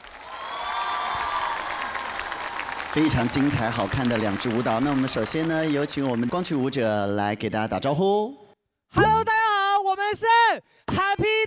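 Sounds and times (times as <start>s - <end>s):
audience applause: 0.0s - 7.0s
crowd cheering: 0.0s - 7.0s
speech: 2.9s - 9.4s, 10.1s - 11.4s.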